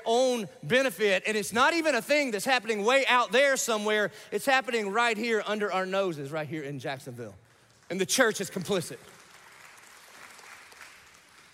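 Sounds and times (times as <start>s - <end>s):
speech: 0.1s - 9.2s
sparse sputtering applause from church audience: 9.0s - 11.5s.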